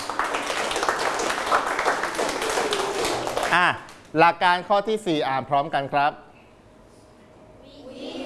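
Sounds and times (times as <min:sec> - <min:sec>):
classroom applause: 0:00.0 - 0:04.1
speech: 0:03.6 - 0:06.2.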